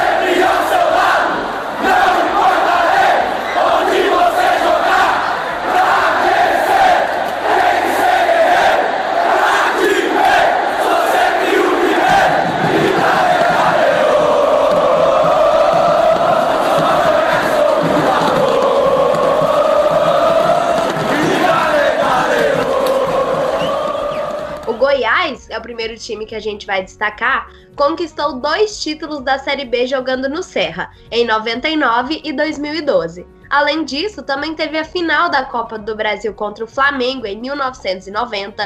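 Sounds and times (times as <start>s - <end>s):
stadium crowd of football fans chanting: 0.0s - 24.8s
speech: 25.9s - 38.6s.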